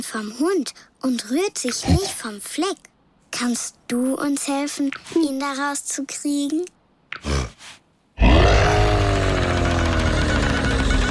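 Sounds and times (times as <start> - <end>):
speech: 0.0 - 7.4
lion roaring: 8.2 - 11.0.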